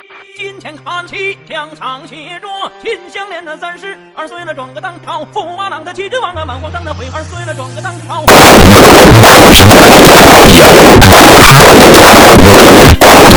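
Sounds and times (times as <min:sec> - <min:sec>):
weird rap music: 0:08.2 - 0:13.3.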